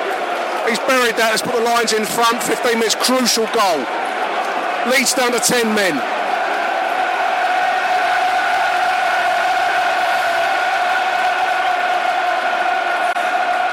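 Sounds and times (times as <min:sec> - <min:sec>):
football stadium crowd cheering: 0:00.0 - 0:13.7
speech: 0:00.7 - 0:04.2, 0:04.8 - 0:06.2.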